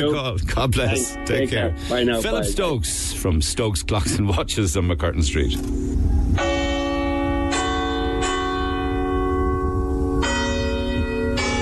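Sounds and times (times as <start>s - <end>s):
speech: 0.0s - 6.5s
church bells chiming: 0.9s - 2.4s, 6.4s - 11.5s.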